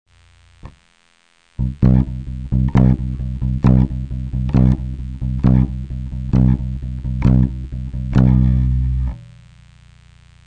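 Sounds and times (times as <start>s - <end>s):
bass accent: 1.6s - 9.2s.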